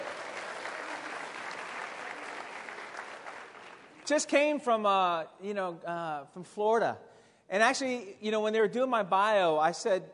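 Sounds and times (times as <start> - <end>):
audience applause: 0.0 - 4.1
speech: 4.1 - 10.1.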